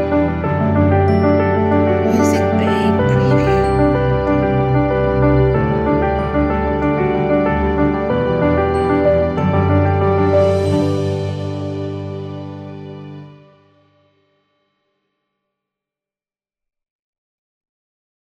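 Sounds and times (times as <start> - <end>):
soft gentle piano: 0.0 - 13.7.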